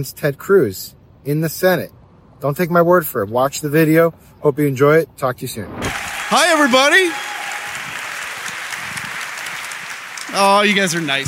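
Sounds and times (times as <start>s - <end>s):
speech: 0.0s - 7.3s, 10.4s - 11.2s
audience applause: 5.9s - 11.2s.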